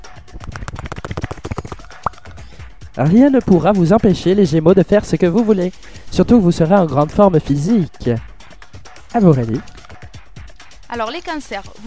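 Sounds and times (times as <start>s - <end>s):
balls being shaken for a horoscope reading: 0.1s - 2.6s
speech: 3.0s - 8.3s, 9.2s - 9.7s, 10.9s - 11.8s.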